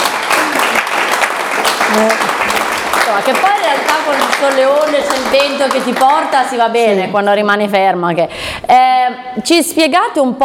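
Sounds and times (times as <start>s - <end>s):
audience applause: 0.0s - 6.6s
speech: 1.9s - 2.3s, 3.1s - 10.4s.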